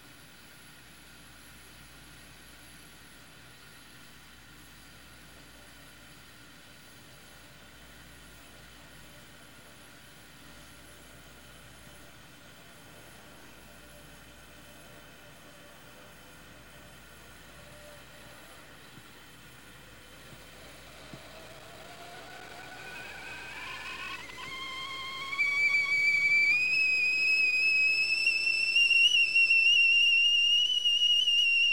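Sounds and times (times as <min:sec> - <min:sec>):
kettle boiling: 0:16.2 - 0:31.7.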